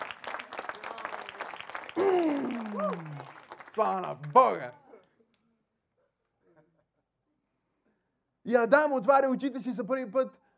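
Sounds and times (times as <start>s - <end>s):
audience applauding: 0.0s - 4.8s
speech: 3.8s - 4.8s, 8.5s - 10.4s.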